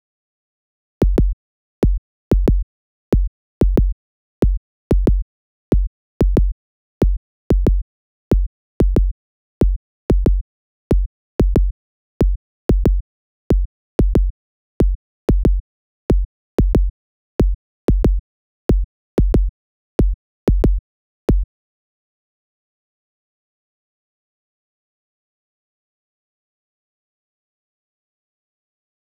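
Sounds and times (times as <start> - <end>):
fruity kick drum: 1.0 - 21.5.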